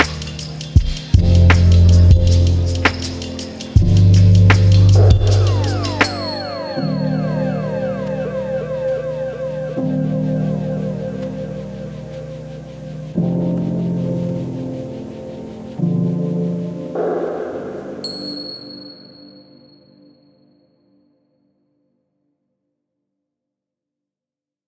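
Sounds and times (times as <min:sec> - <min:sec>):
instrumental music: 0:00.0 - 0:19.2.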